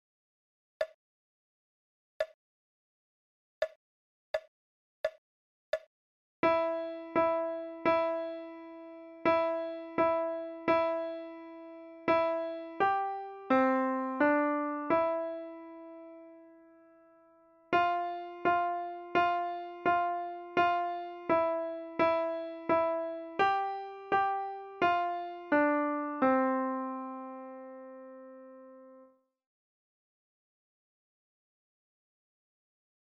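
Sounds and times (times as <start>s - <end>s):
slow Christmas song: 6.5s - 29.1s.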